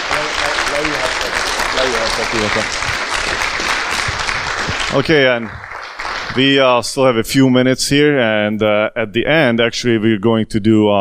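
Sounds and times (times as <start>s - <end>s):
crowd applause: 0.0s - 6.8s
speech: 1.8s - 3.8s, 4.9s - 5.7s, 6.3s - 10.9s.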